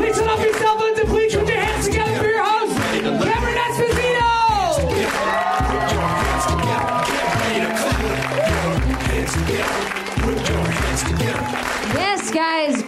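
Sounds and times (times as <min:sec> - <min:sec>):
audience clapping: 0:00.0 - 0:12.8
driving musical beat: 0:00.0 - 0:12.8
scattered cheers and whoops: 0:05.0 - 0:09.2, 0:11.2 - 0:11.9.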